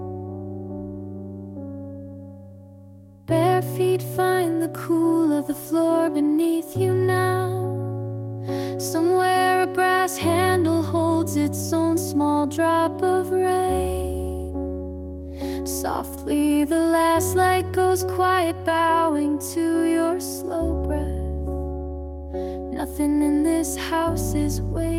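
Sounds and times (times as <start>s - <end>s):
lullaby singing: 3.3s - 14.6s, 15.5s - 21.5s, 22.3s - 24.9s.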